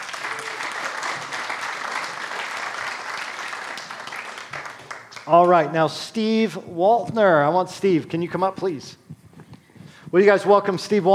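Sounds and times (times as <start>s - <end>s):
audience applause for a person at a gathering: 0.0s - 5.7s
speech: 5.3s - 9.0s, 10.1s - 11.1s.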